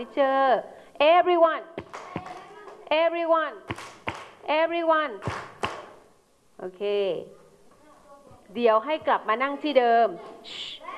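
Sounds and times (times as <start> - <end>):
speech: 0.0 - 2.0, 2.9 - 3.9, 4.5 - 5.5, 6.6 - 7.4, 8.5 - 10.6
children clapping hands: 1.8 - 2.8, 3.7 - 4.4, 5.2 - 6.0.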